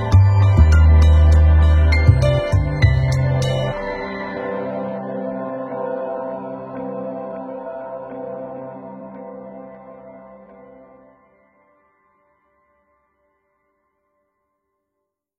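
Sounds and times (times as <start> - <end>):
downtempo music: 0.0 - 11.2.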